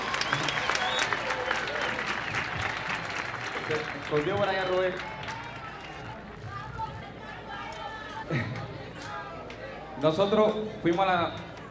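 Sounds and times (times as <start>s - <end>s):
brief cheers: 0.0s - 6.2s
audience applause: 0.0s - 6.3s
speech: 3.7s - 5.2s, 10.0s - 11.4s.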